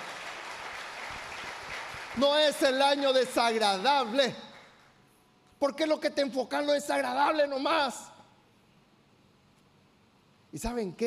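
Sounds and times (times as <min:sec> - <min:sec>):
audience clapping: 0:00.0 - 0:05.0
speech: 0:02.2 - 0:04.4, 0:05.6 - 0:08.1, 0:10.5 - 0:11.0.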